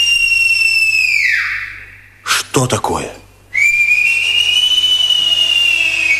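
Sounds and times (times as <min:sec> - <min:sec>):
robbers' whistle mimicking birdsong: 0:00.0 - 0:02.2, 0:03.5 - 0:06.1
speech: 0:02.6 - 0:03.2.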